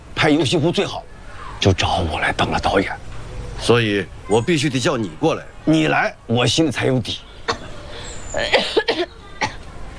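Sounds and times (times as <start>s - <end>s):
low steady hiss: 0.0s - 9.9s
speech: 0.2s - 7.7s, 8.3s - 9.1s
person coughing from cigarette smoke: 8.4s - 9.6s.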